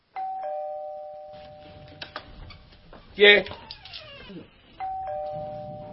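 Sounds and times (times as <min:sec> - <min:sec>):
two-tone ding-dong doorbell rung by a postman: 0:00.2 - 0:02.0, 0:04.8 - 0:05.9
speech: 0:03.2 - 0:03.6.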